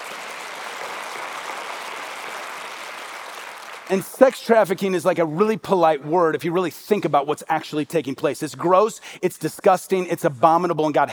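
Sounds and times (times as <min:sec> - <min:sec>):
audience applause: 0:00.0 - 0:04.1
speech: 0:03.9 - 0:11.1.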